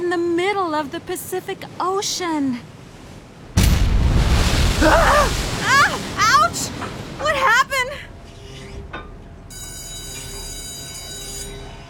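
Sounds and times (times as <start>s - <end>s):
speech: 0.1s - 2.8s, 4.8s - 5.4s
ship crashing into a rock: 3.6s - 7.2s.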